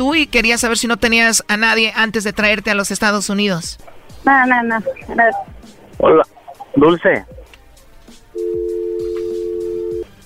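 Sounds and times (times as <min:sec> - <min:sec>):
speech: 0:00.0 - 0:07.4
telephone dialing tones after hang-up: 0:08.4 - 0:10.0.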